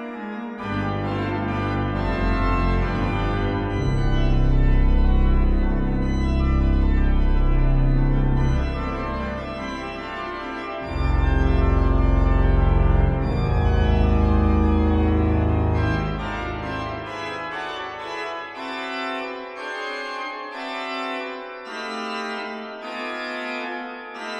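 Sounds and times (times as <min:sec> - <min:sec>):
organ fanfare toccata: 0:00.6 - 0:17.7.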